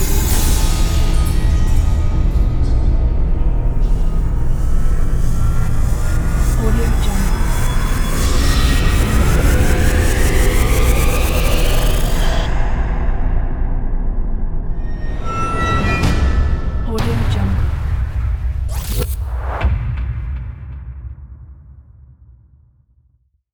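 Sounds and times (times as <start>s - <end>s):
dark suspenseful soundscape atmosphere: 0.0s - 21.3s.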